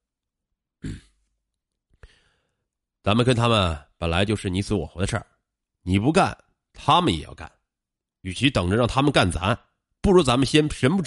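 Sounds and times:
man clearing his throat: 0:00.8 - 0:01.2
breathy exhale: 0:02.0 - 0:02.6
speech: 0:03.0 - 0:07.6, 0:08.2 - 0:11.0.

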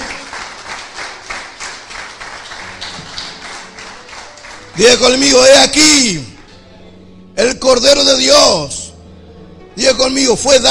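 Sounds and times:
crowd audience clapping and applauding: 0:00.0 - 0:05.4
speech: 0:04.8 - 0:06.3, 0:07.4 - 0:08.8, 0:09.8 - 0:10.6.

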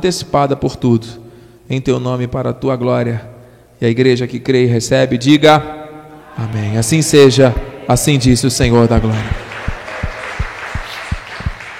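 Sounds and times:
speech: 0:00.0 - 0:05.8, 0:06.4 - 0:09.4
audience applauding: 0:08.7 - 0:11.7.

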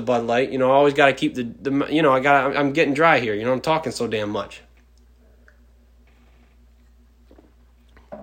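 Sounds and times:
speech: 0:00.0 - 0:04.6
low steady hum: 0:00.0 - 0:08.2
person slurping and swallowing a sip of beer: 0:05.4 - 0:08.1.

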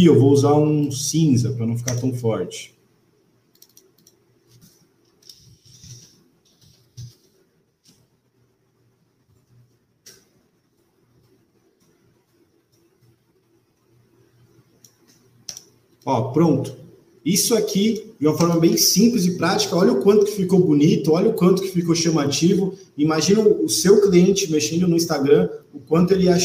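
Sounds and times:
speech: 0:00.0 - 0:02.8, 0:16.0 - 0:26.4
faint computer mouse clicks: 0:03.5 - 0:08.1, 0:09.3 - 0:13.2, 0:14.4 - 0:16.1.

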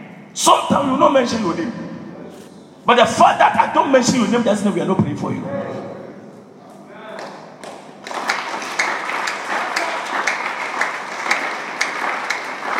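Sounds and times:
speech: 0:00.4 - 0:01.8, 0:02.8 - 0:05.8
group clapping: 0:07.1 - 0:12.7.

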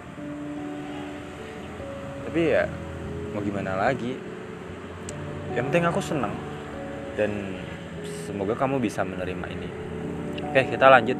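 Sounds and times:
motorbike traffic on the road beside a home: 0:00.0 - 0:11.1
speech: 0:02.3 - 0:04.3, 0:05.5 - 0:06.5, 0:07.2 - 0:07.7, 0:08.3 - 0:09.8, 0:10.5 - 0:11.1.

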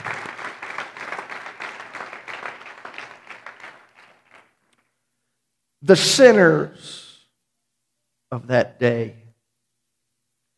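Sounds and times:
audience applause: 0:00.0 - 0:04.6
speech: 0:05.8 - 0:07.0, 0:08.3 - 0:09.2.

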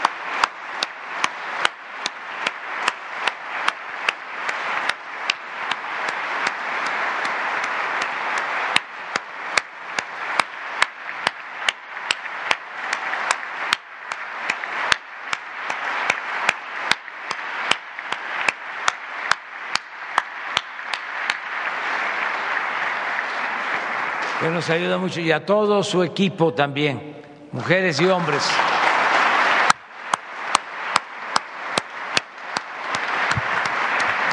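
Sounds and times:
audience applause: 0:00.0 - 0:25.7, 0:27.6 - 0:34.3
speech: 0:24.5 - 0:28.8.

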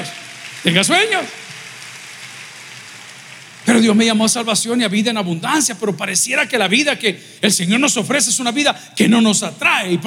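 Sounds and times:
speech: 0:00.0 - 0:01.4, 0:03.7 - 0:10.0
audience applauding: 0:00.0 - 0:04.5.

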